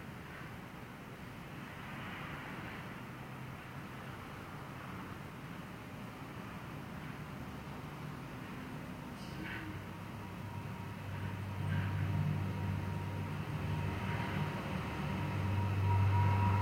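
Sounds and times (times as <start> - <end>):
steady low rumble of traffic heard from a house window: 0.8 - 16.6
vehicle engine droning with a thin whine: 9.3 - 16.6.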